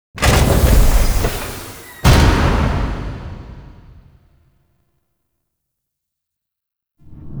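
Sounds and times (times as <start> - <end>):
door closing: 0.2 - 4.1.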